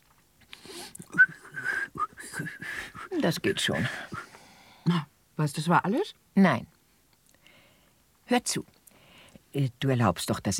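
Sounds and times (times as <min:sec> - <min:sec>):
soft vocal sounds: 0:00.5 - 0:05.2
person whistling a short tune: 0:01.1 - 0:03.2
speech: 0:03.2 - 0:04.2, 0:04.8 - 0:06.7, 0:08.3 - 0:08.7, 0:09.5 - 0:10.5.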